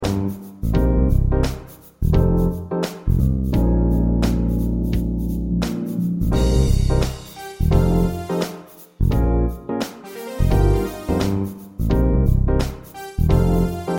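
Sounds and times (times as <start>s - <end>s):
musical accompaniment: 0.0s - 13.9s.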